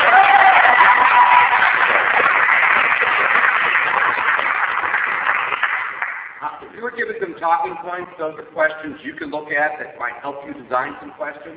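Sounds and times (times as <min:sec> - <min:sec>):
crowd applause: 0:00.0 - 0:06.4
speech: 0:07.4 - 0:11.5.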